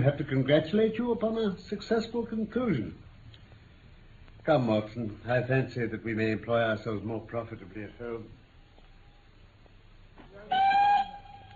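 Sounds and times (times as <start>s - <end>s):
speech: 0.0s - 3.1s, 4.4s - 8.4s
train whistle: 10.5s - 11.5s.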